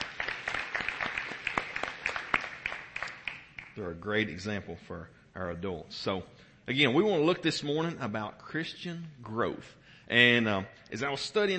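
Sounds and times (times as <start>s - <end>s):
audience applause: 0.0s - 3.8s
speech: 3.8s - 11.5s.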